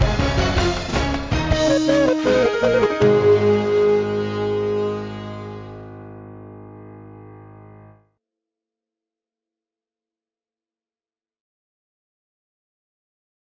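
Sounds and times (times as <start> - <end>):
Arabic newscast intro music: 0.0 - 8.0.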